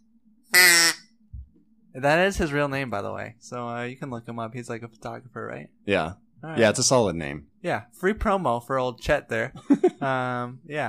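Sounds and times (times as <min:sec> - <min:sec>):
faint low hum: 0:00.0 - 0:10.8
duck call quack sound effect: 0:00.5 - 0:01.0
speech: 0:02.0 - 0:10.8.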